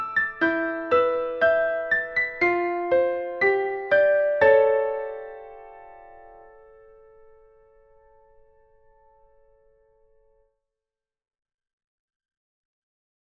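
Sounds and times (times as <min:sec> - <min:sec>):
piano: 0:00.0 - 0:10.5.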